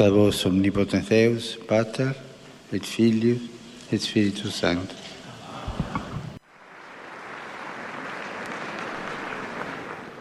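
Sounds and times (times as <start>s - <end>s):
speech: 0.0s - 5.0s
audience applause: 5.5s - 10.1s.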